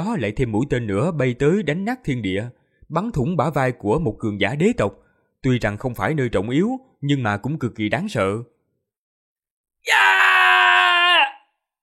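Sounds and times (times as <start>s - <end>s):
speech: 0.0s - 8.6s, 9.8s - 10.3s
wounded warrior screaming in anger and fear: 9.8s - 11.5s.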